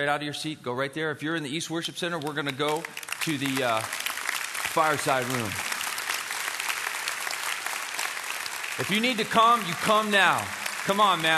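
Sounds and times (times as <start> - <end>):
speech: 0.0 - 4.0, 4.7 - 5.7, 8.8 - 11.3
congregation clapping in a worship center: 2.1 - 11.3.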